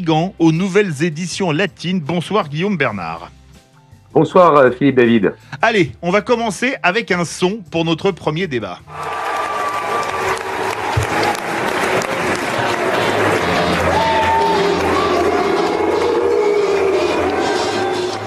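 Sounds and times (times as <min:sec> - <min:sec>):
speech: 0:00.0 - 0:03.4, 0:04.1 - 0:09.2
crowd applauding at rally: 0:08.9 - 0:18.2.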